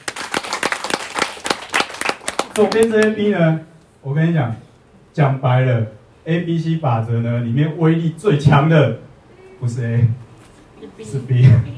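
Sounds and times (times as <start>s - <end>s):
audience applause: 0.0s - 3.1s
speech: 2.6s - 10.2s, 10.8s - 11.7s.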